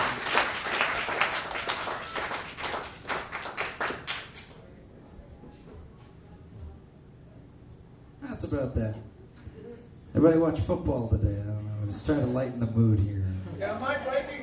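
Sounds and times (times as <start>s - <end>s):
audience applause: 0.0s - 4.4s
speech: 8.5s - 9.1s, 10.2s - 13.9s.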